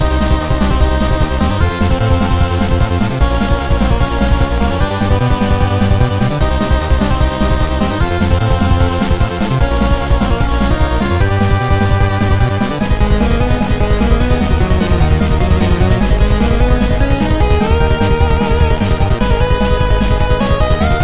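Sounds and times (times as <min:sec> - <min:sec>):
miniboss game music loop: 0:00.0 - 0:21.0.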